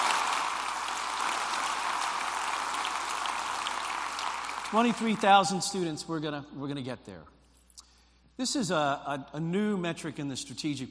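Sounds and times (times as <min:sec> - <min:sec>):
audience round of applause: 0:00.0 - 0:05.6
speech: 0:04.7 - 0:07.4, 0:08.4 - 0:10.8.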